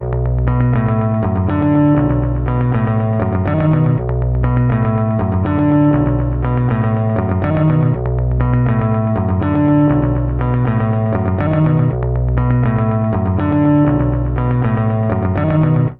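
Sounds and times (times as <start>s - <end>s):
bass guitar loops: 0.0s - 15.9s.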